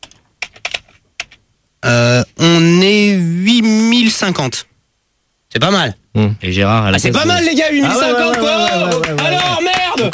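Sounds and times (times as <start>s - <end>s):
clicking and key taps on a computer: 0.0s - 1.4s
speech: 1.8s - 3.6s, 4.2s - 4.7s, 5.5s - 10.1s.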